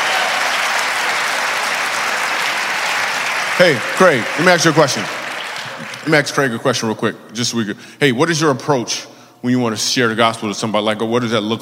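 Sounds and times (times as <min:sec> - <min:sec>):
crowd applauding: 0:00.0 - 0:06.6
speech: 0:03.6 - 0:05.2, 0:06.0 - 0:11.5.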